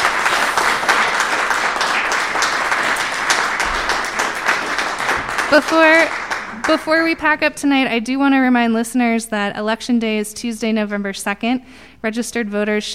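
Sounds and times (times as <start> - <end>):
live audience applause: 0.0 - 7.0
speech: 5.5 - 12.9.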